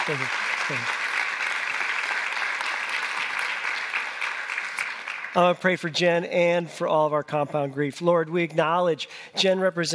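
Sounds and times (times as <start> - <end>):
group clapping: 0.0 - 5.6
speech: 0.1 - 1.1, 5.3 - 9.9.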